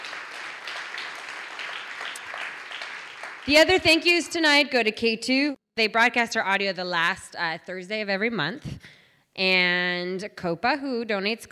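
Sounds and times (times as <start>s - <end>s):
audience clapping: 0.0s - 4.4s
speech: 3.4s - 11.5s.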